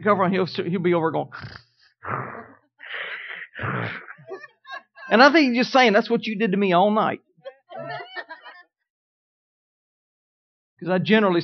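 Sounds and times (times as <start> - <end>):
speech: 0.0 - 2.4, 3.6 - 4.1, 5.1 - 8.1, 10.8 - 11.4
parrot mimicking human snoring: 1.3 - 4.1
laughter: 2.3 - 5.8, 7.5 - 8.7, 11.3 - 11.4.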